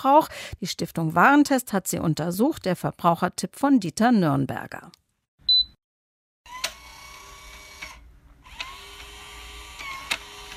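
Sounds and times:
speech: 0.0 - 5.0
smart door lock motor unlocking: 6.5 - 10.5.

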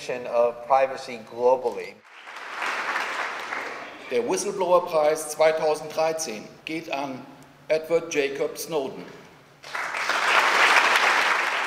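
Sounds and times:
speech: 0.0 - 2.1, 4.1 - 9.8
standing ovation from the audience at the Whistleblower Prize 2013 ceremony: 2.0 - 4.3, 9.6 - 11.6.

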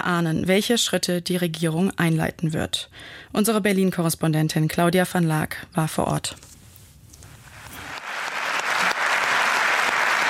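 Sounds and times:
speech: 0.0 - 6.6
applause: 7.6 - 10.2.

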